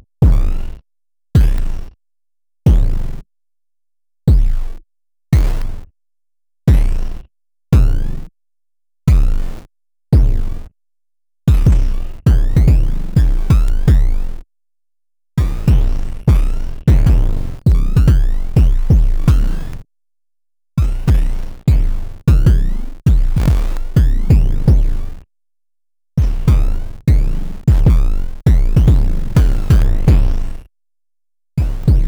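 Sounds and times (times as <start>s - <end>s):
bass drum rhythms: 0.2s - 0.6s, 1.4s - 1.8s, 2.7s - 3.1s, 4.3s - 4.8s, 6.7s - 7.2s, 7.8s - 8.1s, 9.1s - 9.6s, 10.2s - 10.6s, 11.5s - 14.4s, 15.4s - 19.8s, 20.8s - 25.2s, 26.2s - 30.7s, 31.6s - 32.0s.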